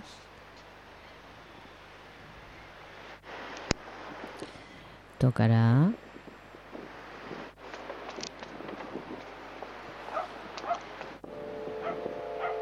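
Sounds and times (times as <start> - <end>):
speech: 5.2 - 6.0
dogs barking on the beach of San Lorenzo: 10.1 - 10.9, 11.7 - 12.6.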